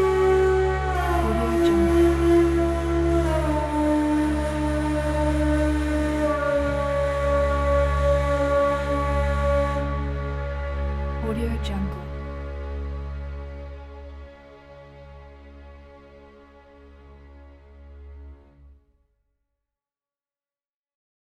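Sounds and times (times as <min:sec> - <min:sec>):
Egyptian ney solo: 0:00.0 - 0:13.3.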